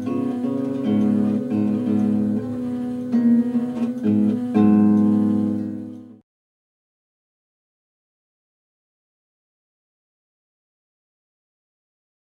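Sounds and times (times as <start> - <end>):
pipes playing in C: 0.0 - 6.2.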